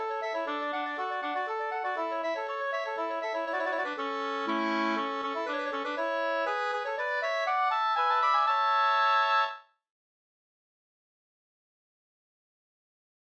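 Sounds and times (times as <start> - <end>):
polska dance tune: 0.0 - 9.6.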